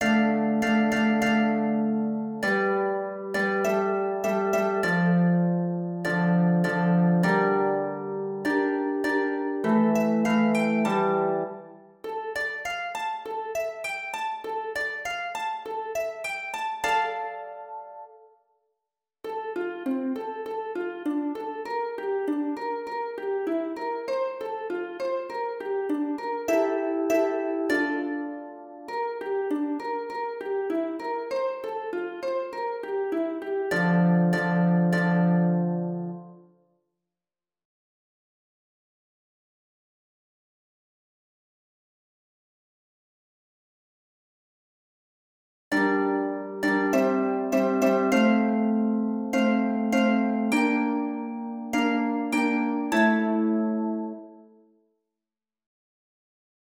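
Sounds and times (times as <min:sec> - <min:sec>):
harp: 0:00.0 - 0:18.4, 0:19.2 - 0:36.5, 0:45.7 - 0:54.6.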